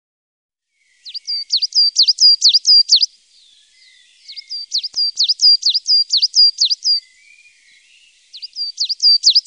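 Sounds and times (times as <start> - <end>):
coal tit singing: 1.0 - 3.1, 4.3 - 7.0, 8.4 - 9.4.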